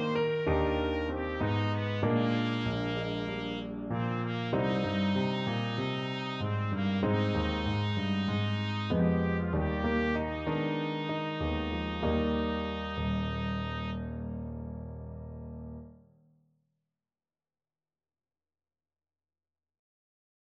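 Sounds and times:
trumpet playing: 0.0s - 14.2s.

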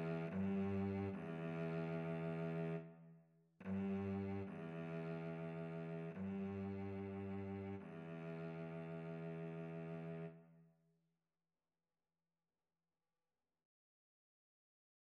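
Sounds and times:
violin and cello duet: 0.0s - 2.9s, 3.6s - 10.4s.

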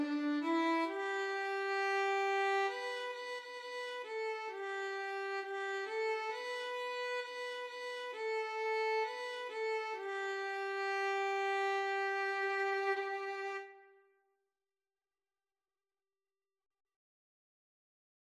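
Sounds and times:
violin and cello duet: 0.0s - 13.8s.

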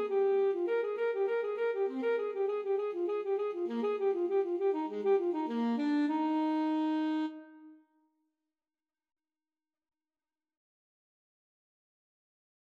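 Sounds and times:
saxophone playing a cello suite courante: 0.0s - 7.8s.

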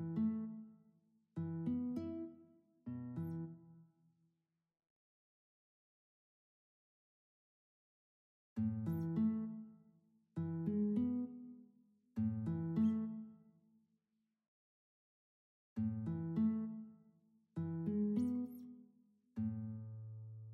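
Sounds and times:
classical guitar duet: 0.0s - 0.6s, 1.4s - 3.6s, 8.6s - 9.6s, 10.4s - 11.4s, 12.2s - 13.2s, 15.8s - 16.8s, 17.6s - 18.7s.

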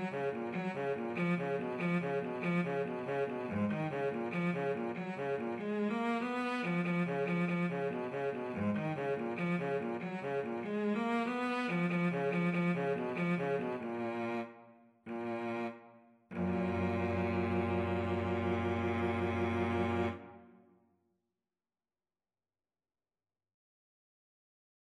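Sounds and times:
violin and cello duet: 0.0s - 14.5s, 15.1s - 20.3s.

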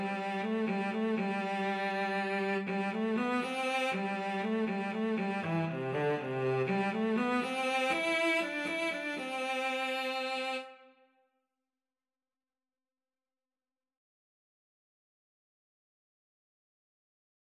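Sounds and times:
cello duet: 0.0s - 10.7s.

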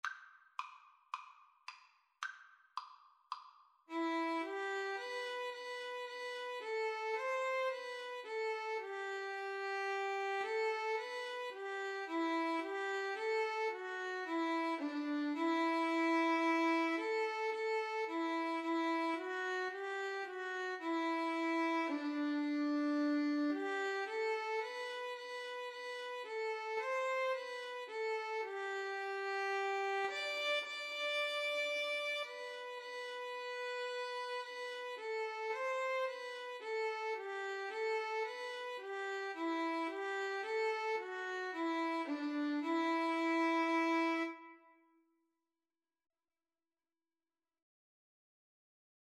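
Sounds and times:
violin and viola duet: 3.9s - 44.6s.

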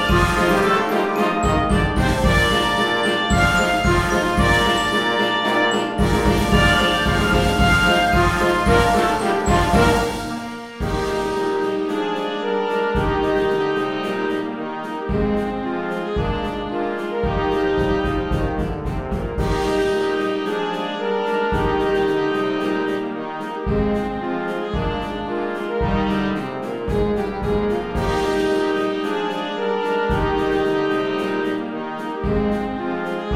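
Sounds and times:
wind band playing: 0.0s - 33.3s.

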